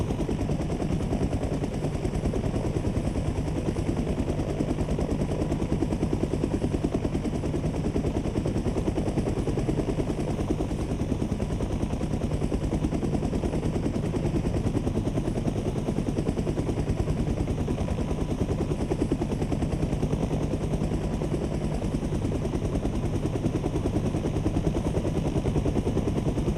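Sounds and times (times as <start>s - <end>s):
helicopter engine and rotor idling: 0.0s - 26.5s.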